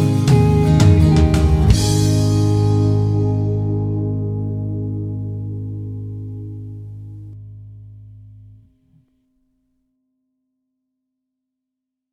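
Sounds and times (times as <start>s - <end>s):
triad vamp in A-flat major: 0.0s - 8.7s.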